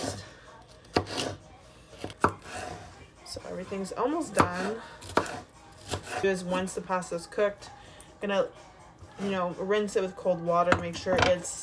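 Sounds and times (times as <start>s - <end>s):
knife dicing green peppers on a cutting board: 0.0s - 2.9s, 3.8s - 6.7s
speech: 3.4s - 5.1s, 6.2s - 11.6s.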